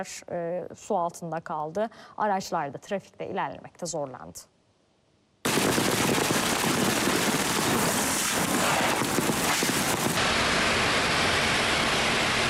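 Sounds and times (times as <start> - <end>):
speech: 0.0 - 4.5
sudden heavy downpour: 5.5 - 12.4.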